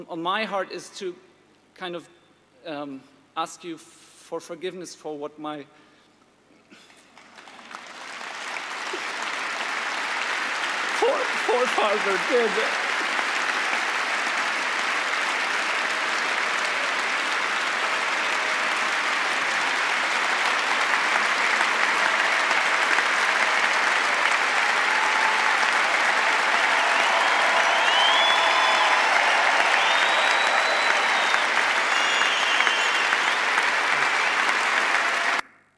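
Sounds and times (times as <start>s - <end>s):
speech: 0.0s - 5.8s, 11.6s - 12.9s
audience standing and applauding: 6.9s - 35.4s.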